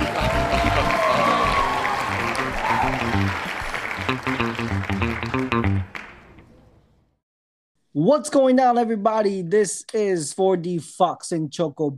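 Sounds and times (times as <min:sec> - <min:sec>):
rhythmic music: 0:00.0 - 0:06.0
audience applause and cheering as performers are welcomed onstage: 0:00.0 - 0:06.4
speech: 0:08.0 - 0:11.9.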